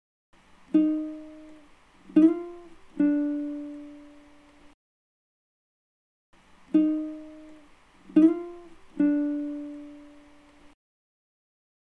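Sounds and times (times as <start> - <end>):
guitar loop in G minor: 0.7 - 4.7, 6.7 - 10.7.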